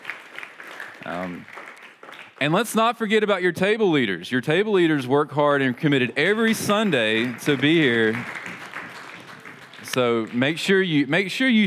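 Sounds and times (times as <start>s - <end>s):
audience applause: 0.0s - 2.5s, 6.3s - 11.0s
speech: 1.0s - 1.6s, 2.4s - 8.5s, 10.0s - 11.6s.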